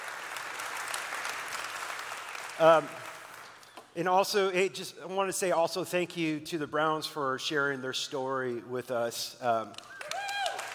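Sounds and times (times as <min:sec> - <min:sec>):
church congregation clapping to welcome middle and high school students: 0:00.0 - 0:04.0, 0:09.7 - 0:10.7
speech: 0:02.6 - 0:03.0, 0:04.0 - 0:09.9.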